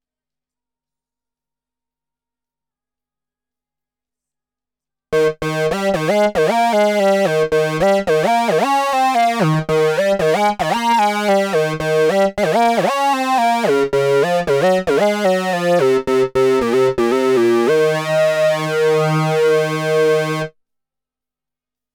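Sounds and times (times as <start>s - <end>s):
Moog synthesizer: 5.2s - 20.5s.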